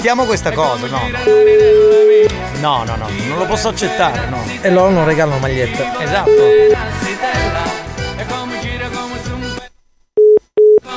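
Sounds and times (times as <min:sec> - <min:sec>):
speech: 0:00.0 - 0:08.4
loud dense music: 0:01.0 - 0:08.6
phone busy signal of a failed call: 0:01.3 - 0:02.3, 0:06.2 - 0:06.8, 0:10.2 - 0:10.9.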